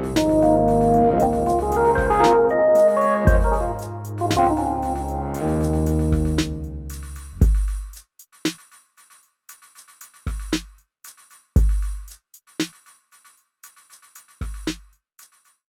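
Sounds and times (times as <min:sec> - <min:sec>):
Matriarch synthesizer bass: 0:00.0 - 0:07.0
drums recorded on Zoom R8: 0:00.0 - 0:15.7.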